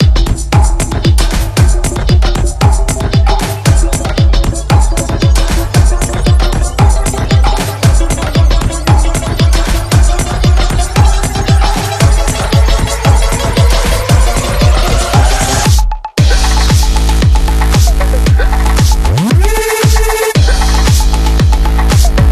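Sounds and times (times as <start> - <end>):
facility background music: 0.0 - 22.3.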